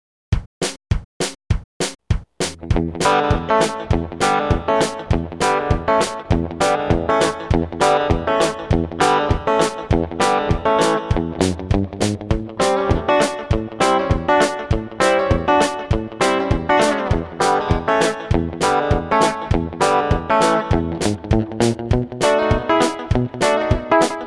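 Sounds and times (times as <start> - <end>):
rhythm guitar: 0.4 - 24.2.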